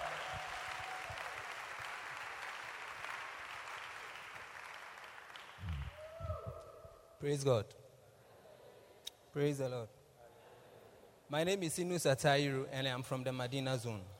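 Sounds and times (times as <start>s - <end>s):
audience clapping: 0.0s - 6.2s
speech: 7.2s - 7.8s, 9.3s - 10.0s, 11.3s - 14.1s.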